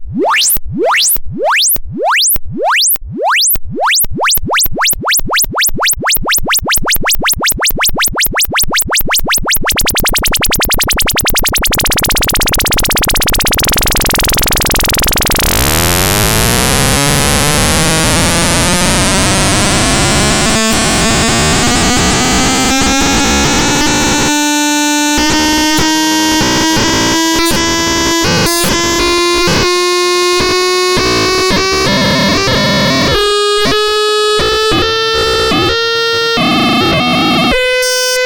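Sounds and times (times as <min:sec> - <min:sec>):
noisebox synthesizer noise: 0:00.0 - 0:38.2.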